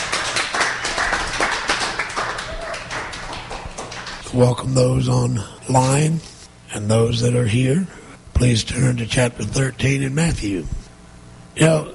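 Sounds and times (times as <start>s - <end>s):
audience clapping: 0.0s - 4.2s
speech: 4.4s - 10.8s, 11.6s - 11.9s.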